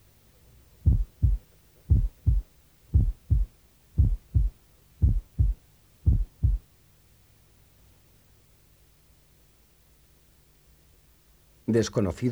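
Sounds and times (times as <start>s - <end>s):
faint hum: 0.0s - 12.3s
heartbeat through stethoscope diaphragm: 0.8s - 6.7s.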